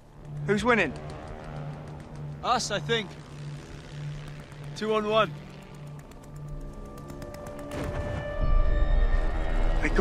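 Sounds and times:
three planes in a dogfight: 0:00.0 - 0:09.9
speech: 0:00.5 - 0:01.1, 0:02.4 - 0:03.2, 0:04.8 - 0:05.4.

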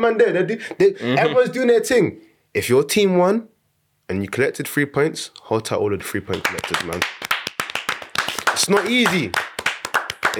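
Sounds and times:
speech: 0:00.0 - 0:03.5, 0:04.1 - 0:07.3, 0:08.6 - 0:09.5
hand clapping: 0:06.3 - 0:10.3.

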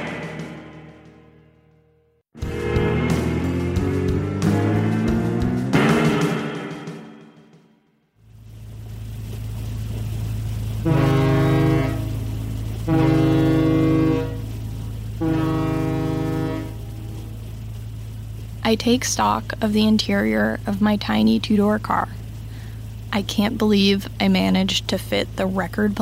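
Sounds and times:
ferry horn blasts: 0:00.0 - 0:01.6, 0:02.4 - 0:07.3, 0:10.6 - 0:18.5
steady low engine rumble: 0:02.4 - 0:06.0, 0:08.2 - 0:26.0
speech: 0:18.7 - 0:22.2, 0:23.2 - 0:26.0.

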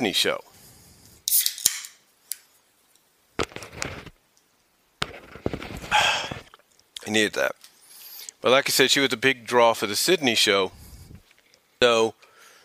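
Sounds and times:
speech: 0:00.0 - 0:00.5, 0:07.1 - 0:07.7, 0:08.4 - 0:10.8, 0:11.8 - 0:12.2
soda being opened: 0:01.2 - 0:02.0.

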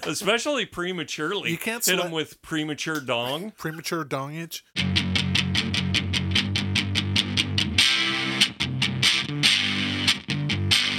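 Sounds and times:
speech: 0:00.0 - 0:05.0
electric guitar through gated sputtery distortion: 0:04.8 - 0:10.9.

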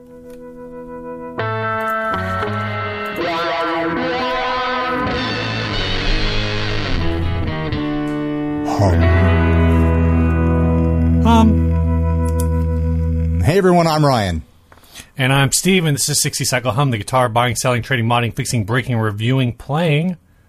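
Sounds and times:
podcast intro music: 0:00.0 - 0:14.4
speech: 0:08.8 - 0:09.1, 0:13.6 - 0:14.5, 0:15.2 - 0:20.2.

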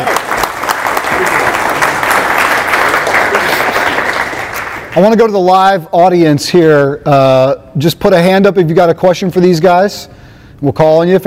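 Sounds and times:
crowd applauding: 0:00.0 - 0:05.0
speech: 0:05.0 - 0:11.2.

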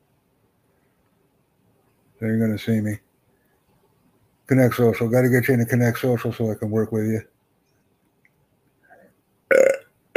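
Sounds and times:
speech: 0:02.2 - 0:03.0, 0:04.5 - 0:07.3
burp after dinner: 0:09.5 - 0:10.1.

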